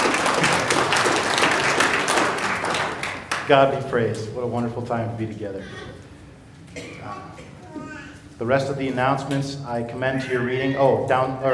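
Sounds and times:
audience applauding: 0.0 - 3.6
speech: 3.5 - 5.9, 8.4 - 11.5.

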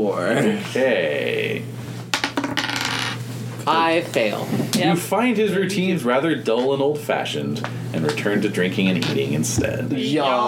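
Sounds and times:
speech: 0.0 - 1.8, 3.7 - 10.4
dice rolled onto a table: 2.1 - 3.2.

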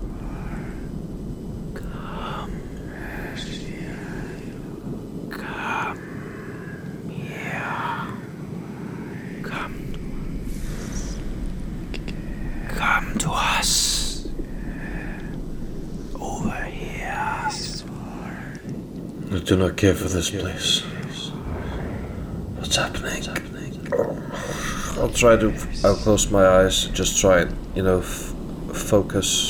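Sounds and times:
eerie whispering voices: 0.0 - 8.4, 9.1 - 11.4, 12.0 - 18.0, 19.2 - 29.4
speech: 19.5 - 20.9, 25.2 - 28.3, 28.9 - 29.4.

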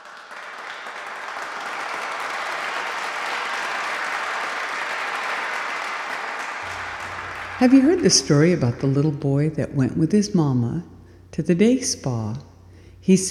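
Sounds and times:
audience applause welcoming a speaker: 0.0 - 8.9
speech: 7.6 - 13.2.

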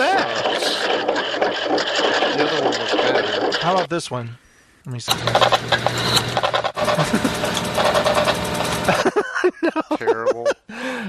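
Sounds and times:
teletype machine clattering: 0.0 - 3.9, 5.1 - 9.0
laughter: 2.4 - 3.4, 6.8 - 7.6, 8.8 - 11.0
speech: 3.7 - 8.1.

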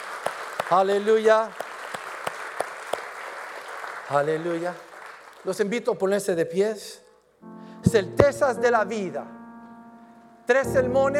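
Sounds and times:
audience applause: 0.0 - 5.6
speech: 0.7 - 1.6, 4.1 - 7.0, 7.8 - 9.4, 10.5 - 11.1.

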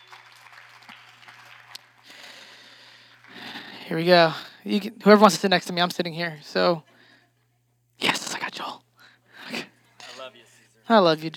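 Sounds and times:
round of applause: 0.0 - 4.4
speech: 3.9 - 6.9, 10.9 - 11.3.

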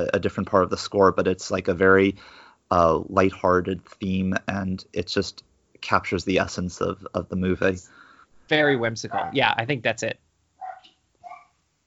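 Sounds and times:
speech: 0.0 - 10.2
small dog barking: 9.1 - 9.4, 10.6 - 11.5.

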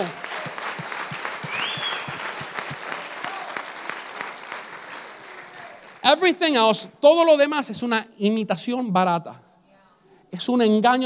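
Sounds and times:
audience applause: 0.0 - 6.3
speech: 6.1 - 9.4, 10.3 - 11.0.

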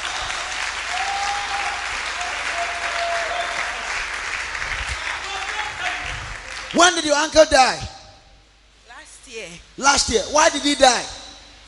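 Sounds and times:
clapping: 0.0 - 6.8
speech: 6.7 - 7.9, 9.4 - 11.2.

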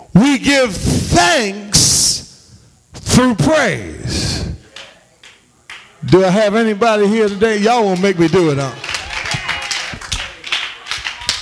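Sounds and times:
speech: 0.2 - 2.2, 3.1 - 4.5, 6.0 - 8.8
audience clapping: 4.7 - 6.2, 7.2 - 11.4.

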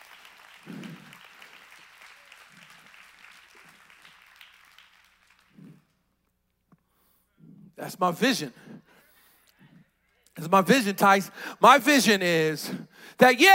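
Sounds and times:
audience clapping: 0.0 - 6.2
speech: 7.8 - 8.8, 10.4 - 13.5.

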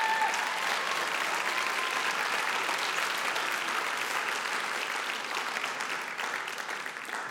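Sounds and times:
audience applause welcoming a doctor onto the stage at a university gathering: 0.0 - 7.2.

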